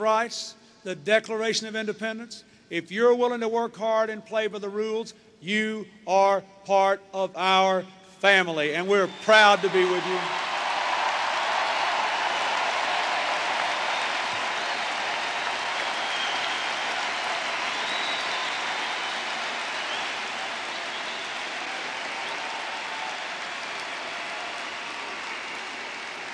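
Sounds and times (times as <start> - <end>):
speech: 0.0 - 10.4
crowd cheering and applauding: 9.0 - 26.3.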